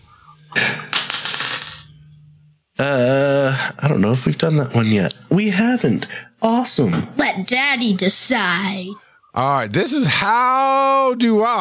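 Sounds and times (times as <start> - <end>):
dice clattering across a hard surface: 0.9 - 1.8
speech: 2.8 - 11.5.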